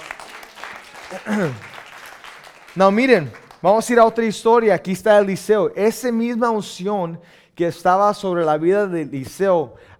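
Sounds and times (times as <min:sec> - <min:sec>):
audience applause: 0:00.0 - 0:03.6
speech: 0:01.1 - 0:01.7, 0:02.8 - 0:09.9.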